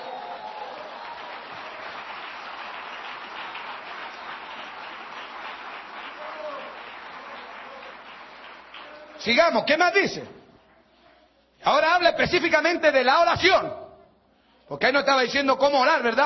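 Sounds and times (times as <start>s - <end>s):
audience clapping in praise: 0.0s - 9.5s
speech: 9.2s - 10.4s, 11.6s - 13.8s, 14.7s - 16.2s.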